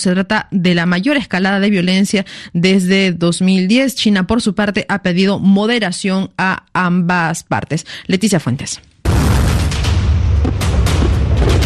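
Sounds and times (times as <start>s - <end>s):
speech: 0.0s - 8.9s
North Korean artillery missile roaring: 9.1s - 11.6s.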